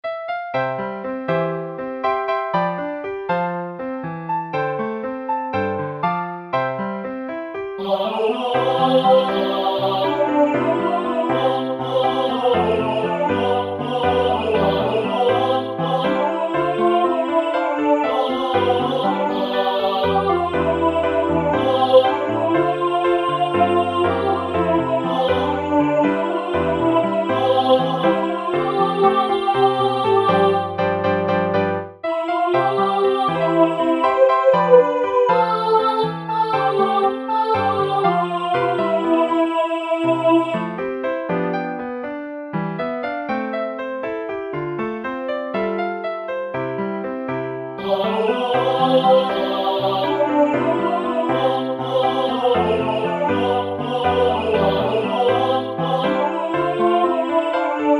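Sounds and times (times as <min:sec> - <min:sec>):
piano: 0:00.0 - 0:57.9.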